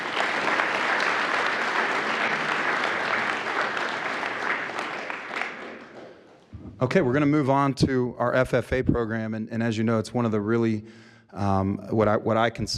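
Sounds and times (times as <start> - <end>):
audience applauding: 0.0 - 7.0
speech: 6.8 - 12.7.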